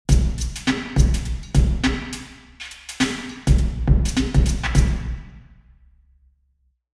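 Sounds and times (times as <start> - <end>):
drum in church: 0.1 - 5.6.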